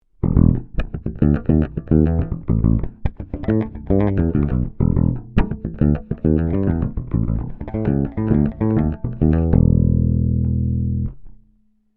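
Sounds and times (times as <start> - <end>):
Ibanez EHB1505 on bridge passive pickup: 0.2 - 11.4.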